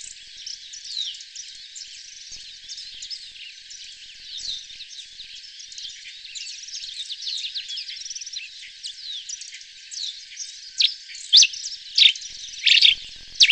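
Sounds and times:
Grey-crested Finch chirping and twittering: 0:00.0 - 0:13.5.

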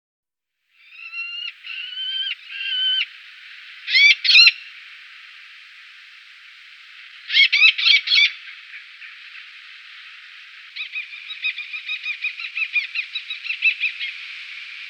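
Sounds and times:
Eleonora's falcon chattering calls: 0:00.8 - 0:03.2, 0:03.8 - 0:04.8, 0:07.0 - 0:14.2.

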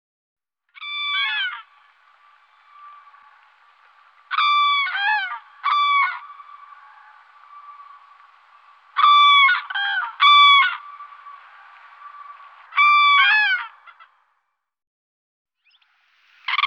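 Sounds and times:
crane honking calls: 0:00.8 - 0:14.2.

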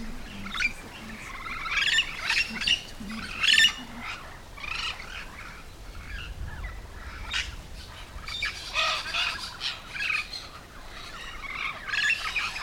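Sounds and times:
yellow-shouldered parrots squawking: 0:00.3 - 0:06.3, 0:07.0 - 0:12.6.

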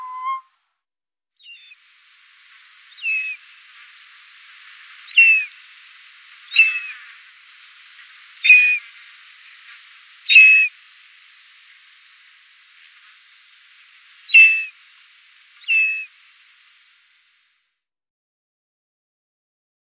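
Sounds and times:
short-toed snake eagle whistling: 0:00.0 - 0:00.4, 0:02.4 - 0:16.6.

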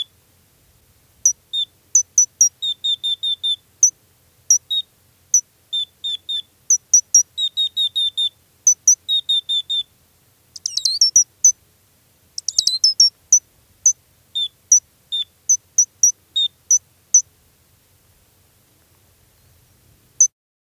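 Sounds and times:
Gray's lark calls: 0:01.2 - 0:03.6, 0:04.5 - 0:09.9, 0:10.6 - 0:11.6, 0:12.4 - 0:17.3.

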